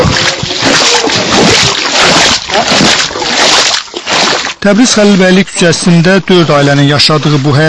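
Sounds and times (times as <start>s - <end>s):
rubber boots splashing through a flooded residential yard: 0.0s - 7.6s
speech: 4.6s - 7.6s.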